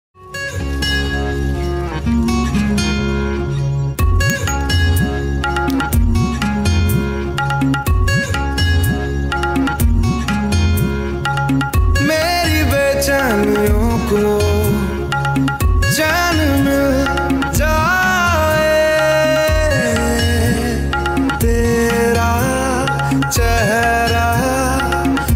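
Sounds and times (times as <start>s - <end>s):
instrumental ringtone: 0.2s - 25.3s.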